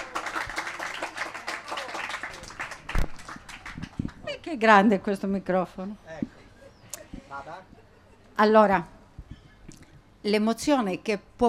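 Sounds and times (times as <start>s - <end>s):
audience applause: 0.0s - 4.2s
speech: 4.5s - 6.0s, 7.4s - 7.8s, 8.4s - 9.0s, 10.2s - 11.4s.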